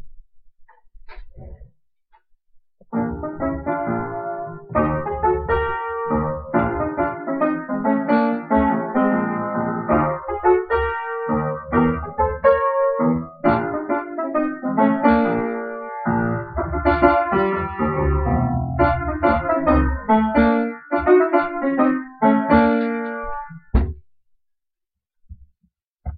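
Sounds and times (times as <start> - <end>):
fast honky-tonk music: 2.9 - 23.9.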